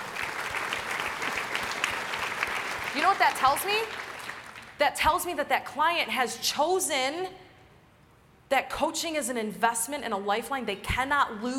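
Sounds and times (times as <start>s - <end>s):
audience applause: 0.0s - 4.7s
speech: 3.0s - 4.0s, 4.8s - 7.4s, 8.5s - 11.5s.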